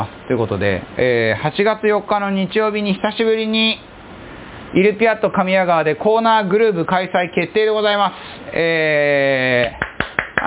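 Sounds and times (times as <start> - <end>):
speech: 0.0 - 3.9, 4.7 - 9.8
slow hand claps: 9.6 - 10.4.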